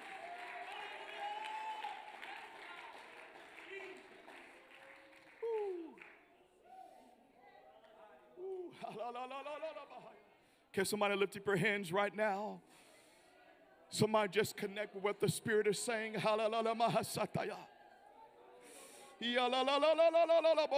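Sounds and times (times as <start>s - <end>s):
audience clapping: 0.0s - 6.3s
laughter: 8.4s - 10.3s
speech: 8.9s - 10.2s, 10.8s - 12.8s, 13.9s - 17.7s, 19.2s - 20.7s.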